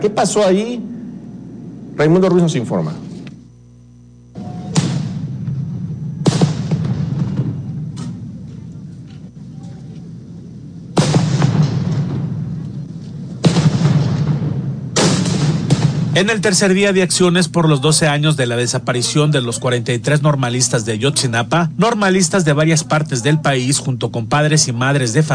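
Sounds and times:
speech: 0.0 - 0.9, 2.0 - 3.1, 16.2 - 25.3
firecrackers exploding: 4.7 - 8.0, 10.9 - 12.8, 13.4 - 16.2.

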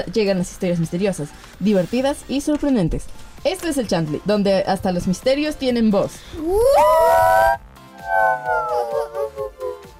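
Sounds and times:
speech: 0.0 - 7.6
voices imitating an ambulance siren: 6.5 - 9.9.

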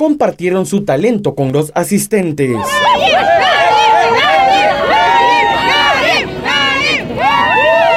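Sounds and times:
speech: 0.0 - 4.2
audience applause: 2.6 - 7.9.

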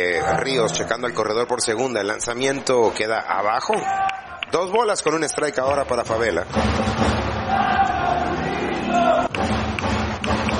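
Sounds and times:
speech: 0.0 - 7.2
baseball stadium crowd cheering on a batter: 3.4 - 10.5.

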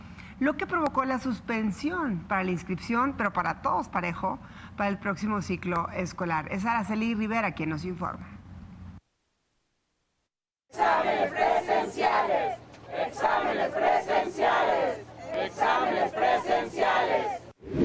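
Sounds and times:
speech: 0.4 - 8.3
marching protesters chanting: 10.7 - 17.5.

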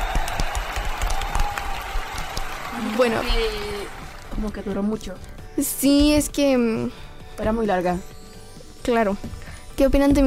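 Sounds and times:
small group clapping after a story reading: 0.0 - 5.4
speech: 2.9 - 3.7, 4.4 - 8.1, 8.8 - 10.2.

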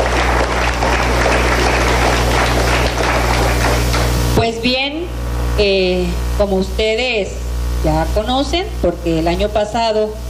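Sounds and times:
community crowd clapping: 0.0 - 4.4
low electrical hum: 0.0 - 10.2
speech: 5.6 - 10.2.

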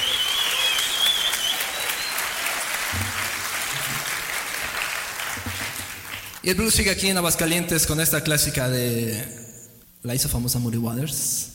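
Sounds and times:
audience applause: 0.0 - 6.4
speech: 6.4 - 9.4, 10.0 - 11.5.

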